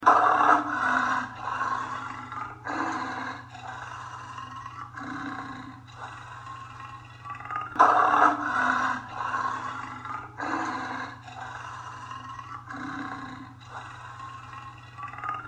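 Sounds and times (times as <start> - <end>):
animal roar in Africa: 0.0 - 15.4.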